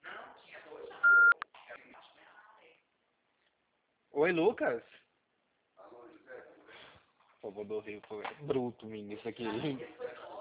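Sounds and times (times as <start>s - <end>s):
mid-high voicemail beep: 1.0s - 1.4s
speech: 4.2s - 5.0s, 7.4s - 10.2s.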